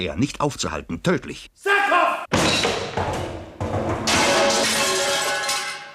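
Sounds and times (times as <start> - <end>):
speech: 0.0 - 2.7
spotlight crashing down onto a person: 2.3 - 5.9.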